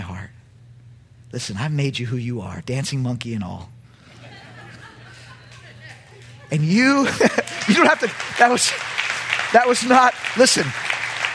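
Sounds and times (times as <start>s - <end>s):
speech: 1.3s - 3.8s, 6.5s - 10.9s
laughter: 4.0s - 9.9s
audience clapping: 5.4s - 11.3s.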